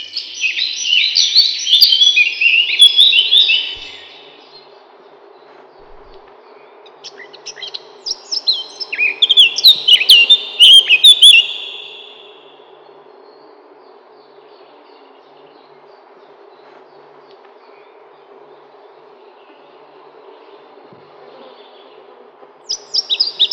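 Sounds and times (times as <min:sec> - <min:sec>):
Eurasian blackcap song: 0:00.0 - 0:04.7, 0:05.8 - 0:12.6, 0:22.6 - 0:23.5.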